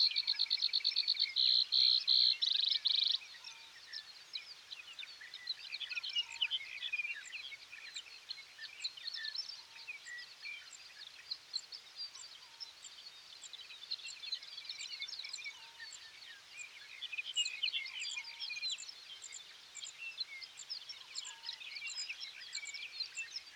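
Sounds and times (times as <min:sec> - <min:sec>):
dawn birds in the sage: 0:00.0 - 0:23.5.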